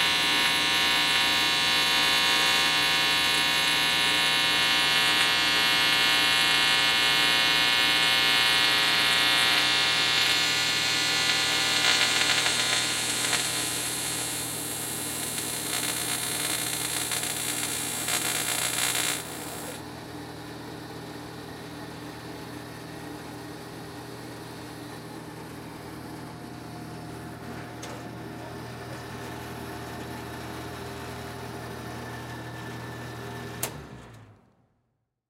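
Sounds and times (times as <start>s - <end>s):
TIG welder sparking: 0.0s - 19.8s.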